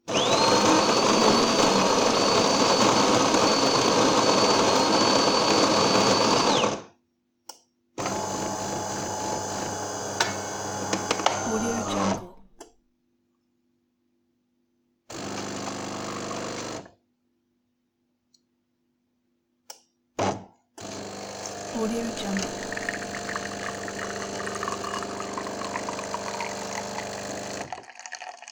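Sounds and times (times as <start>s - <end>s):
coffee grinder serving espresso: 0.1s - 6.9s, 8.0s - 12.6s, 15.1s - 16.8s, 20.8s - 28.4s.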